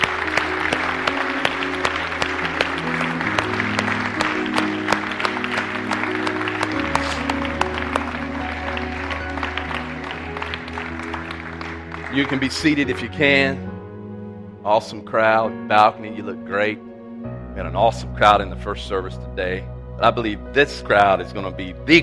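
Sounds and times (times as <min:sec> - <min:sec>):
audience applauding: 0:00.0 - 0:13.2
speech: 0:12.2 - 0:13.7, 0:14.6 - 0:16.9, 0:17.6 - 0:22.0.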